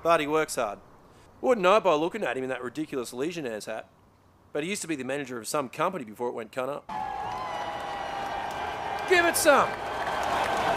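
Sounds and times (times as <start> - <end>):
speech: 0.0 - 7.1, 9.1 - 9.9
simulated stadium crowd cheering: 6.9 - 10.7.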